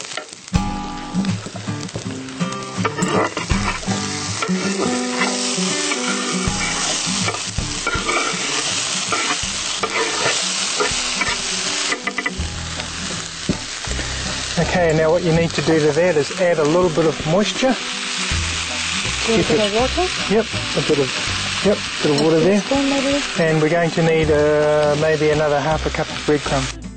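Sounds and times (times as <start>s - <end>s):
onions sizzling in a hot pan: 0.0s - 26.9s
utensil stirring and scraping through onions: 3.0s - 11.4s
speech: 14.8s - 18.0s, 19.3s - 26.8s.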